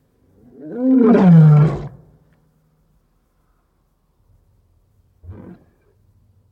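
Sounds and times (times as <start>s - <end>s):
lion roar: 0.4s - 2.1s, 5.2s - 5.9s.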